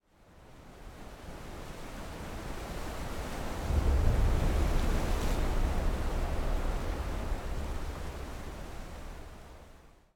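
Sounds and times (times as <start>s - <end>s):
wind hit: 3.6s - 9.4s.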